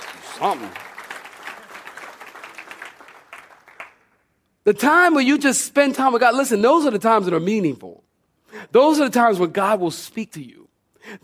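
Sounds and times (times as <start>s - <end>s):
audience clapping hands: 0.0s - 4.3s
speech: 0.4s - 0.9s, 4.7s - 8.0s, 8.6s - 11.2s.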